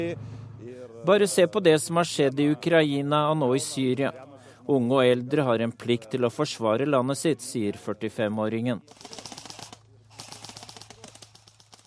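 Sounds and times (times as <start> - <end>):
speech: 0.0 - 0.4, 1.0 - 9.3
gunfire from uniformed civilians shooting at targets during military training among trees: 8.9 - 11.8.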